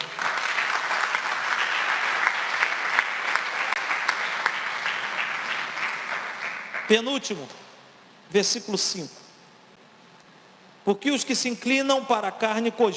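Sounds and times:
audience applause: 0.0 - 7.1
speech: 6.9 - 7.6, 8.3 - 9.2, 10.8 - 12.9.

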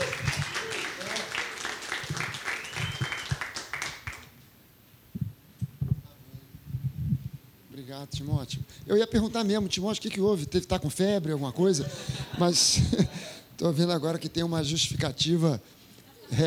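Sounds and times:
laughter: 0.0 - 3.2, 11.3 - 13.3, 16.0 - 16.4
audience applause: 0.0 - 4.3
speech: 7.9 - 16.4.

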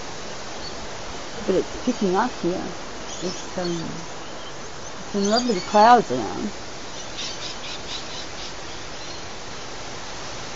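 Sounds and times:
rushing wind: 0.0 - 10.5
speech: 1.5 - 4.2, 5.1 - 6.6
faint high bird chirps: 3.1 - 9.3.

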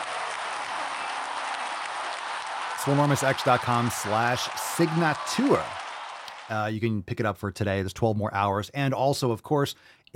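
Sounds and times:
applause: 0.0 - 6.7
speech: 2.8 - 5.8, 6.5 - 10.1.

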